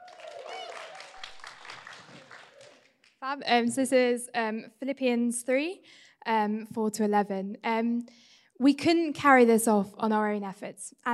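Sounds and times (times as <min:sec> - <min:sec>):
audience applause: 0:00.0 - 0:03.1
speech: 0:03.2 - 0:11.1.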